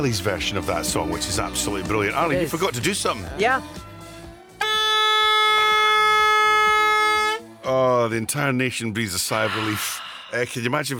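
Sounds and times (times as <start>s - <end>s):
speech: 0.0s - 3.9s, 7.7s - 10.9s
vuvuzela toot: 4.6s - 7.5s.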